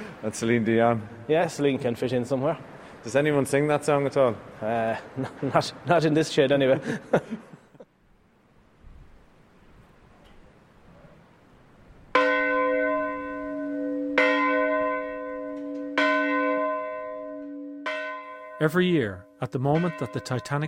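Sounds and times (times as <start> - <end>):
speech: 0.2 - 7.6, 18.6 - 20.6
laughter: 4.6 - 7.9
church bell tolling: 12.1 - 20.6.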